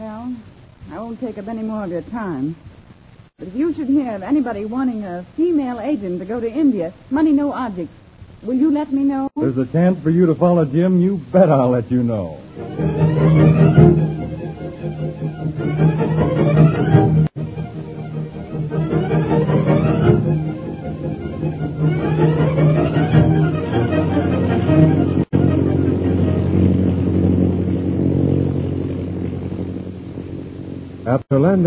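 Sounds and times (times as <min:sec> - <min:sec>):
speech: 0:01.1 - 0:02.7, 0:03.4 - 0:12.9
propeller plane engine droning in flight: 0:09.4 - 0:31.6.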